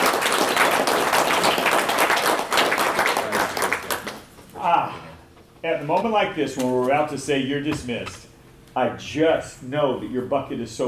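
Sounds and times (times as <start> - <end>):
audience applause: 0.0 - 4.3
speech: 5.6 - 8.2, 8.8 - 10.8.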